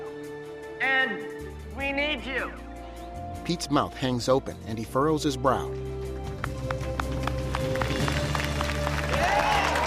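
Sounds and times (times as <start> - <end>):
speech: 0.8 - 2.6, 3.4 - 6.0
students clapping along in the bleachers: 6.2 - 9.8.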